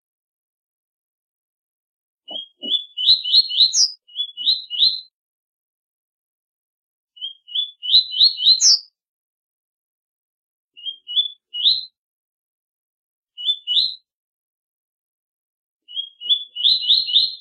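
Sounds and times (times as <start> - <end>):
double-collared seedeater singing rising whistled phrases: 2.3 - 5.1, 7.2 - 8.9, 10.8 - 12.0, 13.4 - 14.0, 15.9 - 17.4.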